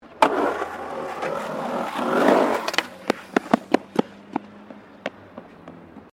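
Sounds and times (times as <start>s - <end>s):
skateboard in skate bowl: 0.0s - 4.1s.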